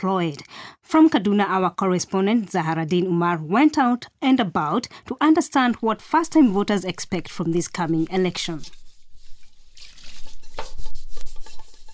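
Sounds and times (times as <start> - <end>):
speech: 0.0 - 8.8
washing dishes by hand: 6.4 - 11.9
water splashing and dripping: 9.2 - 11.9.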